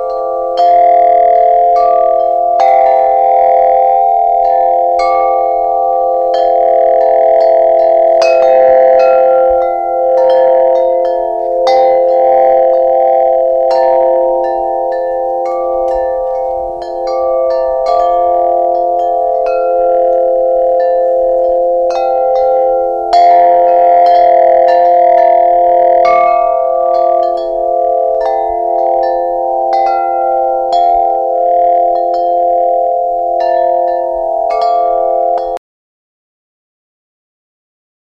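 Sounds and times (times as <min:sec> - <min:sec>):
wind chime: 0:00.0 - 0:35.6.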